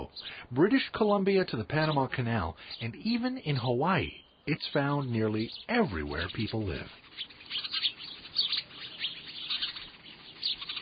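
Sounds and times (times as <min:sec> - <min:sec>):
house sparrows chirping: 0:00.0 - 0:10.7
speech: 0:00.1 - 0:07.8.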